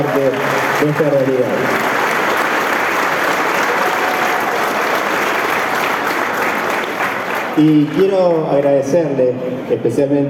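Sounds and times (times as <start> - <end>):
speech: 0.0 - 1.9, 7.6 - 10.2
audience applause: 0.0 - 8.6.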